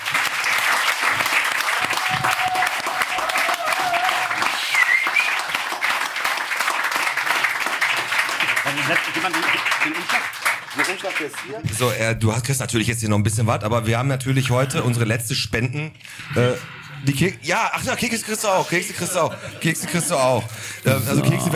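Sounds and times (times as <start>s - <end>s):
audience applause: 0.0s - 11.6s
speech: 8.9s - 21.5s
laughter: 18.0s - 21.5s.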